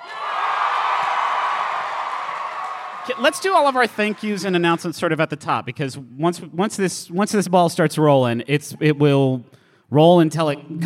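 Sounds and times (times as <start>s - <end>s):
audience cheering and whooping: 0.0s - 4.4s
speech: 3.1s - 10.8s.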